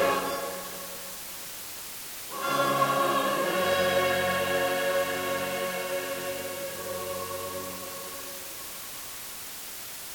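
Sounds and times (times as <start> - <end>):
re-amplified music signal: 0.0 - 1.2, 2.3 - 8.9.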